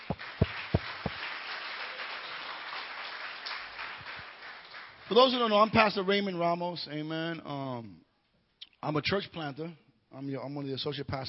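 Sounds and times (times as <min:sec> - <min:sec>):
audience clapping: 0:00.0 - 0:05.8
speech: 0:05.1 - 0:08.0, 0:08.8 - 0:11.2.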